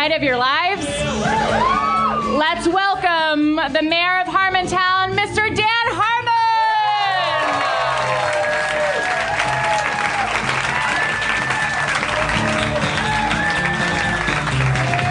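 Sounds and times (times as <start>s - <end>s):
speech: 0.0s - 6.1s
live audience applauding and cheering: 6.6s - 15.0s.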